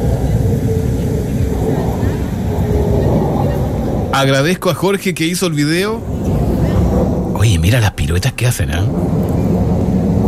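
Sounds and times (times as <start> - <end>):
F-16 fighter jets flying overhead over Calama: 0.0 - 10.2
speech: 4.2 - 6.4, 7.4 - 9.3.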